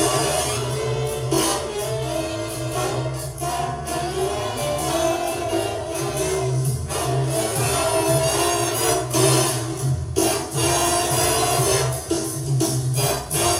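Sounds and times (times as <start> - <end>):
backing track music at half speed without solos: 0.0 - 13.5.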